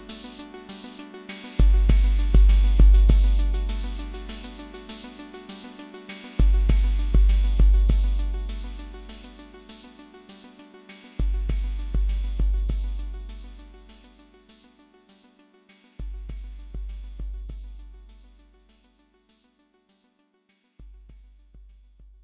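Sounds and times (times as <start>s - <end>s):
drums playing: 1.6s - 5.2s, 6.4s - 9.4s, 11.2s - 13.5s.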